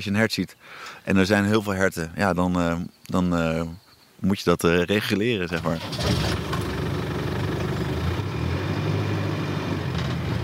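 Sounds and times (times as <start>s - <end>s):
speech: 0.0s - 6.6s
car driving on mountain roads: 5.1s - 10.4s.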